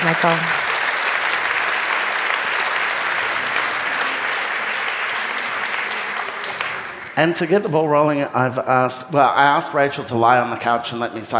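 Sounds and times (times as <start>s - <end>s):
audience applause welcoming author Rachel Kushner at a book event: 0.0s - 7.7s
speech: 0.1s - 0.6s, 7.2s - 11.3s.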